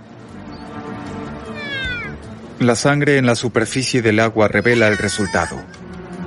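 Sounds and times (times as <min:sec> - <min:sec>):
orca calls: 0:01.4 - 0:02.3, 0:04.5 - 0:05.6
speech: 0:02.6 - 0:05.8
laughter: 0:04.6 - 0:05.9.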